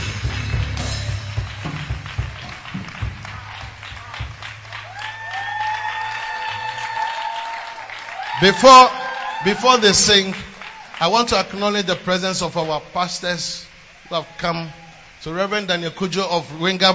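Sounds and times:
audience applauding arriving choir: 0.0s - 12.7s
speech: 8.4s - 16.9s.

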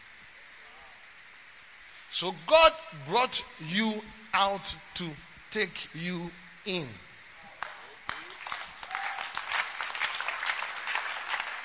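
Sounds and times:
speech: 2.1s - 7.1s
audience clapping: 7.6s - 11.6s.

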